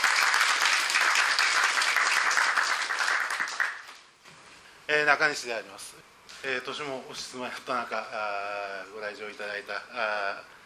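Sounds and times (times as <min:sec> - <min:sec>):
audience applause: 0:00.0 - 0:03.9
speech: 0:04.9 - 0:10.5.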